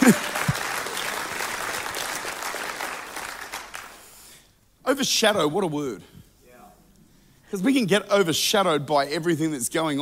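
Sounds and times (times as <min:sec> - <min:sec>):
audience clapping hands: 0:00.0 - 0:04.2
speech: 0:00.1 - 0:00.3, 0:05.0 - 0:06.1, 0:07.5 - 0:10.0.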